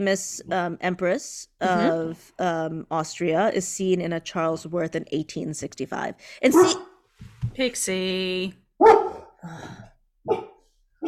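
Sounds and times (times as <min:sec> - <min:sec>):
speech: 0:00.0 - 0:06.9, 0:07.5 - 0:10.5
dog barking: 0:06.5 - 0:06.9, 0:08.8 - 0:09.4, 0:10.2 - 0:11.0.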